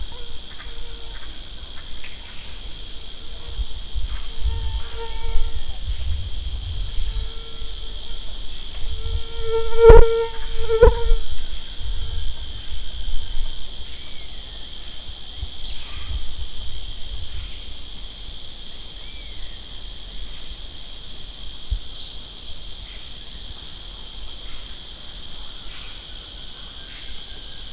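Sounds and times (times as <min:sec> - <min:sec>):
shrill high-pitched insect chorus: 0:00.0 - 0:27.7
mosquito whine: 0:03.2 - 0:13.5.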